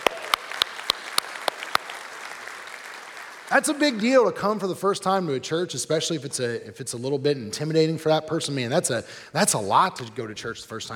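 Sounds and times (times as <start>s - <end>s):
church congregation clapping for first-time guests: 0.0s - 4.6s
speech: 3.5s - 10.9s.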